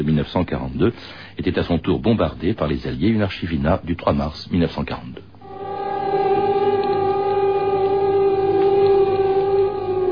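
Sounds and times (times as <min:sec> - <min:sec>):
speech: 0:00.0 - 0:05.3
air raid warning siren wailing: 0:05.4 - 0:10.1.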